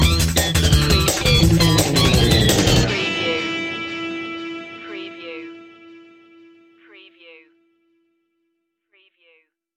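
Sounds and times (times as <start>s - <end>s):
surf music loop ending: 0.0s - 7.1s.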